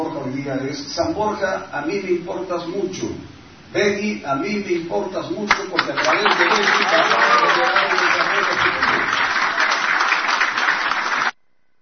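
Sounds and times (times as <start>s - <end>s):
speech: 0.4s - 8.7s
audience applause: 5.8s - 11.4s.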